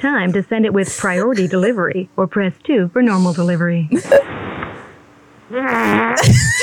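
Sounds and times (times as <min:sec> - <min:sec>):
speech: 0:00.0 - 0:04.3, 0:05.5 - 0:06.6
queef sound effect in a phone voice message: 0:05.5 - 0:06.6.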